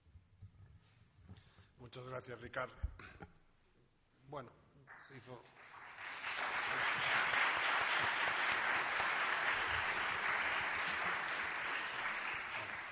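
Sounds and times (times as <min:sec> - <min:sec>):
speech: 0:01.8 - 0:03.3, 0:04.3 - 0:05.8
audience applause: 0:05.6 - 0:12.9.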